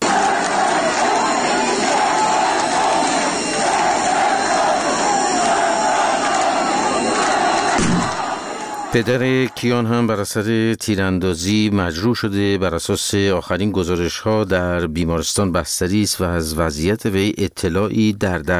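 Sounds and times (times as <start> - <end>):
large crowd roaring and chanting at a funeral ceremony: 0.0 - 10.0
speech: 9.0 - 18.5.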